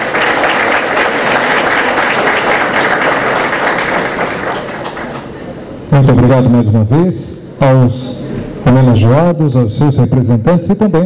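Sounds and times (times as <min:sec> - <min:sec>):
audience applause: 0:00.0 - 0:05.4
speech: 0:06.0 - 0:11.0.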